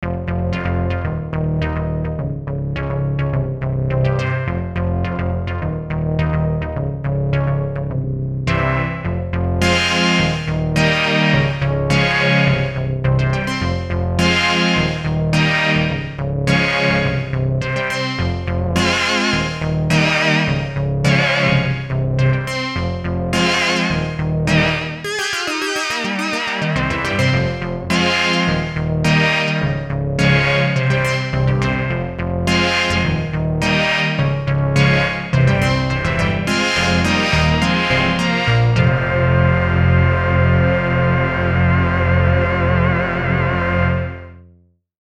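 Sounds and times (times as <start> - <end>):
big synth: 0.0 - 44.2.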